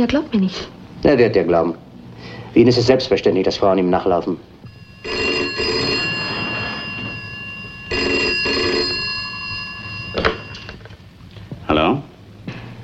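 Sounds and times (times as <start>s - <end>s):
speech: 0.0s - 5.2s
telephone ringing with a buzzing electric bell: 4.6s - 11.1s.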